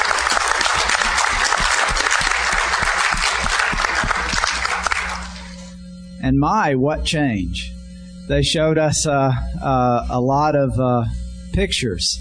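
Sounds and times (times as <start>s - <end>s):
crowd applauding: 0.0s - 5.6s
speech: 6.2s - 7.7s, 8.3s - 12.1s.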